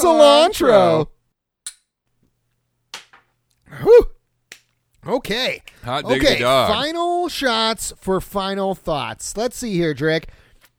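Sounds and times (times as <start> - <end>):
speech: 0.0 - 1.1, 3.8 - 4.1, 5.0 - 10.4
drawn-out tonal vocal exclamation: 3.7 - 4.2.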